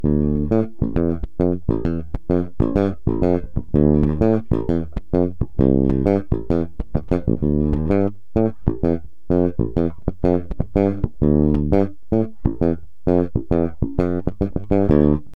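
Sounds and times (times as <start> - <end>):
fingers on instrument bridge groove: 0.0 - 15.3.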